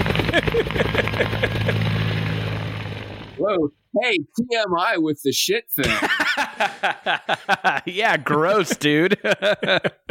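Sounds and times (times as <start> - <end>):
laughter: 0.0 - 1.9, 5.8 - 10.0
helicopter sound effect: 0.0 - 3.4
speech: 0.4 - 1.4, 3.4 - 10.0.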